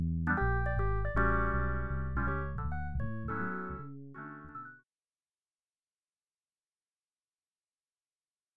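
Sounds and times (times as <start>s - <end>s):
fretless bass: 0.0s - 4.7s.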